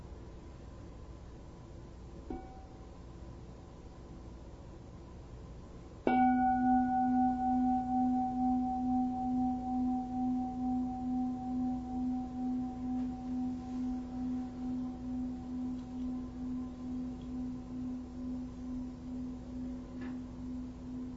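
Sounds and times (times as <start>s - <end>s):
single bell strike: 6.1s - 21.1s.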